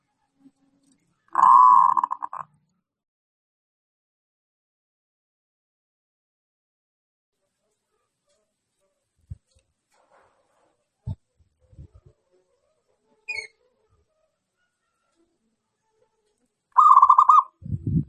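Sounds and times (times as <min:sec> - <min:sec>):
zebra dove cooing: 0:01.4 - 0:02.4, 0:16.8 - 0:17.6.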